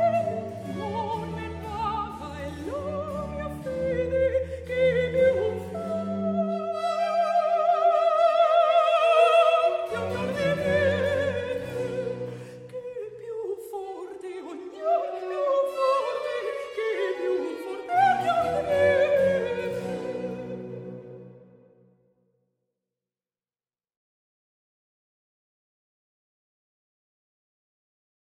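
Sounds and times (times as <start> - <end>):
mezzo soprano opera voice singing: 0.0 - 21.4.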